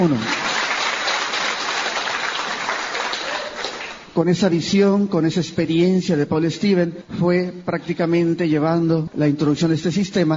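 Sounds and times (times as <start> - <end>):
speech: 0.0 - 0.4, 4.2 - 10.3
audience applause: 0.0 - 4.1.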